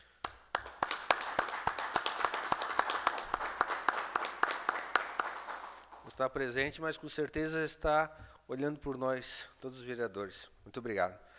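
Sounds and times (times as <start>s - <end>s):
round of applause from a group: 0.0s - 6.2s
speech: 6.2s - 11.3s.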